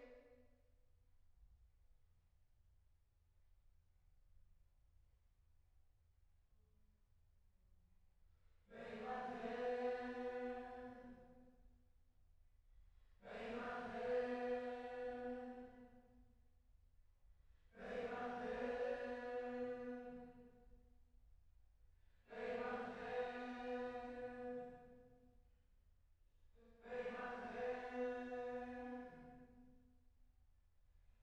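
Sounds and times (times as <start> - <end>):
choir singing: 8.7 - 11.3, 13.2 - 15.9, 17.8 - 20.5, 22.3 - 25.0, 26.7 - 29.5.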